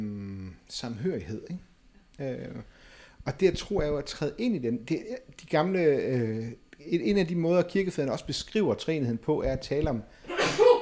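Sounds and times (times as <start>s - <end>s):
speech: 0.7s - 10.7s
person sneezing: 10.2s - 10.8s.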